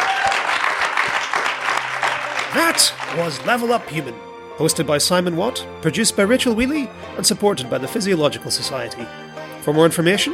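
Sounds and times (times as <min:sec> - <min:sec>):
audience applause: 0:00.0 - 0:04.1
speech: 0:02.6 - 0:10.3.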